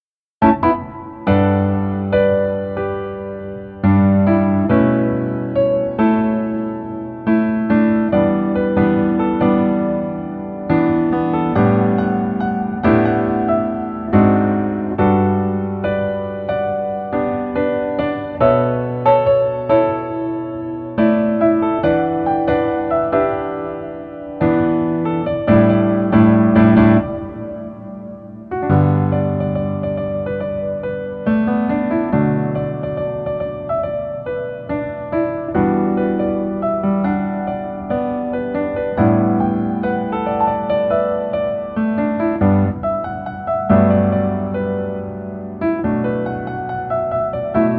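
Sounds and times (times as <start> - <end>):
piano version melody backing track: 0.2 - 47.7.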